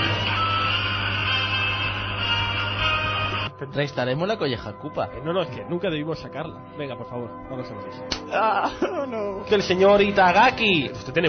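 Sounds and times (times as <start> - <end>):
mobile phone sound: 0.0 - 3.5
speech: 3.6 - 11.2
laughter: 8.3 - 9.6.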